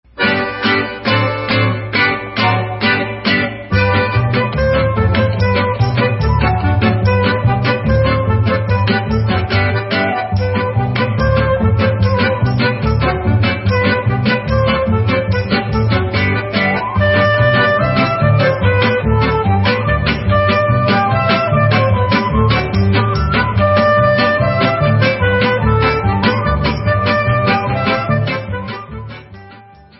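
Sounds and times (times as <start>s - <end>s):
Russian instrumental music: 0.1s - 29.9s.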